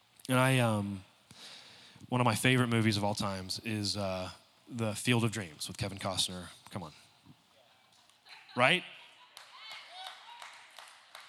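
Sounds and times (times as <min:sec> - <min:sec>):
speech: 0:00.3 - 0:01.5, 0:02.1 - 0:07.0, 0:08.6 - 0:09.0
person clapping: 0:09.4 - 0:11.2.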